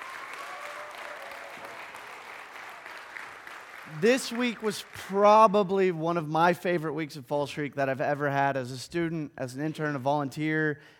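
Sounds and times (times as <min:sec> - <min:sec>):
crowd applauding: 0:00.0 - 0:05.6
speech: 0:03.9 - 0:10.9.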